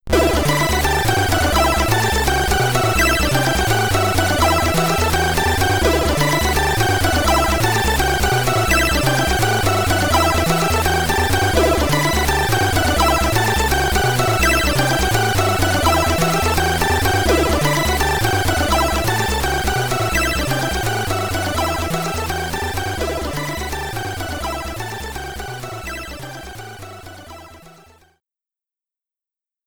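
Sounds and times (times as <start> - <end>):
SID chip music in stereo: 0.1 - 28.2.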